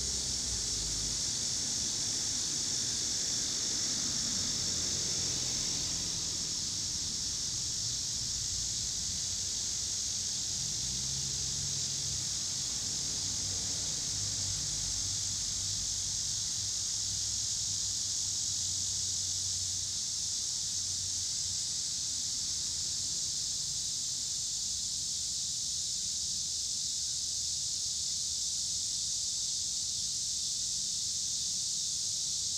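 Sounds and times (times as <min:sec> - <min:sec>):
low rumble of car traffic: 0:00.0 - 0:19.8
cicadas droning: 0:00.0 - 0:32.5.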